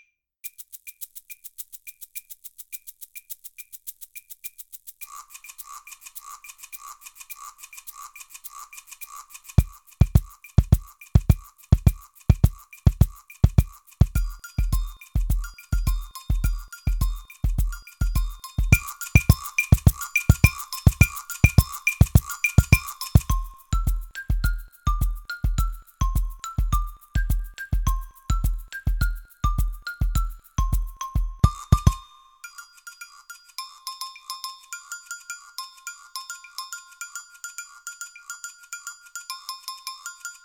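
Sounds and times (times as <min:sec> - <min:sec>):
short samba music: 0:09.6 - 0:32.0.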